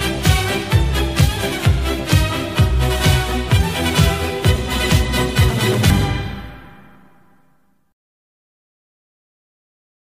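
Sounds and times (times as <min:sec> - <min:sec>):
fanfare at a solemn awards ceremony: 0:00.0 - 0:07.8.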